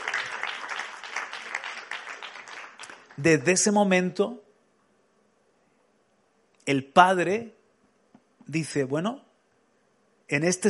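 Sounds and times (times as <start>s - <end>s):
audience applause: 0.0s - 3.2s
speech: 3.2s - 4.4s, 6.7s - 7.6s, 8.5s - 9.2s, 10.3s - 10.6s.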